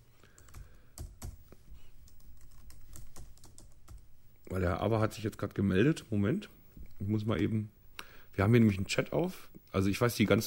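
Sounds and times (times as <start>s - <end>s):
faint hiss: 0.0s - 10.4s
fast typing on a computer keyboard: 0.3s - 1.4s, 2.1s - 4.1s
speech: 4.5s - 7.8s, 8.4s - 10.4s.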